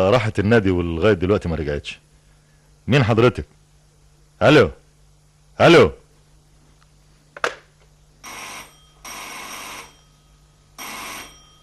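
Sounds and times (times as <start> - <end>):
speech: 0.0 - 2.1, 2.9 - 3.6, 4.4 - 4.8, 5.6 - 6.0
telephone bell ringing: 8.2 - 11.6.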